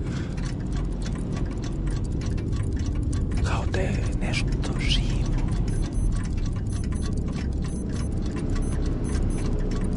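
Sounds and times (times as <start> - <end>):
small clock mechanism ticking: 0.0 - 9.9
speech: 3.7 - 5.3.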